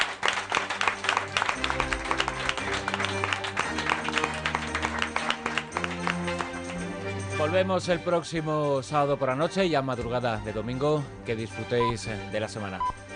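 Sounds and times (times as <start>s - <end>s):
audience applause: 0.0s - 7.2s
speech: 7.4s - 13.0s.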